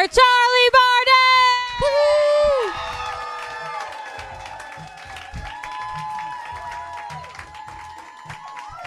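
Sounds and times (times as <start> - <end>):
live audience clapping and cheering: 0.0 - 8.8
shrill whoop: 1.8 - 8.8.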